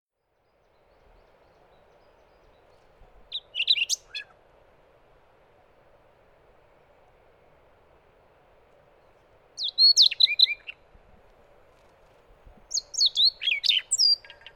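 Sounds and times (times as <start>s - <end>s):
Siberian rubythroat singing: 3.3s - 4.3s, 9.6s - 10.8s, 12.7s - 14.5s.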